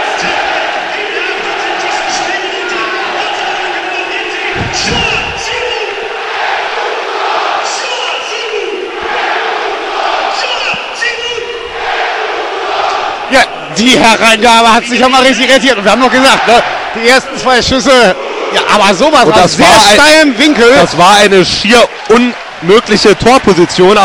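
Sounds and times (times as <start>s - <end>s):
football fans cheering in stadium: 0.0s - 24.0s
low thumps: 4.5s - 6.0s
speech: 13.3s - 24.0s.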